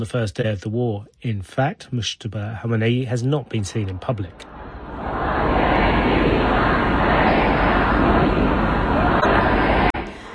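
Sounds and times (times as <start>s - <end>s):
speech: 0.0s - 4.5s
mourners crowding the city streets of Mashhad: 3.5s - 10.3s.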